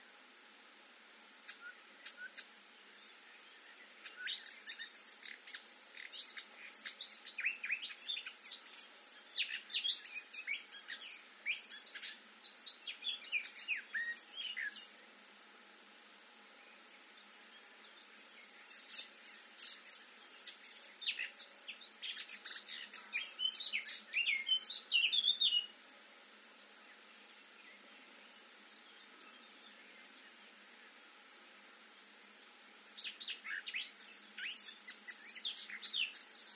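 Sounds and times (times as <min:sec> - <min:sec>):
Eurasian blackcap singing: 0:01.4 - 0:02.5, 0:04.0 - 0:14.9, 0:18.3 - 0:25.7, 0:32.7 - 0:36.5.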